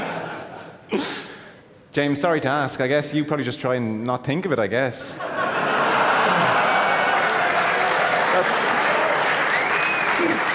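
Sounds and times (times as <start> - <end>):
laughter: 0.0 - 1.0, 5.1 - 10.5
speech: 2.0 - 5.5
hand clapping: 6.6 - 10.5.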